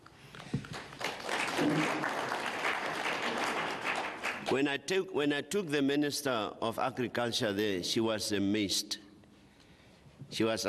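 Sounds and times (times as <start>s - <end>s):
audience applause: 0.7s - 4.6s
speech: 4.5s - 9.0s, 10.3s - 10.6s.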